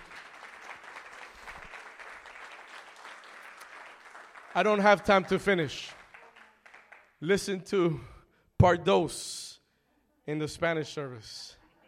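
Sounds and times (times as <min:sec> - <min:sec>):
audience hand clapping: 0:00.0 - 0:07.2
speech: 0:04.6 - 0:06.0, 0:07.2 - 0:09.5, 0:10.3 - 0:11.6.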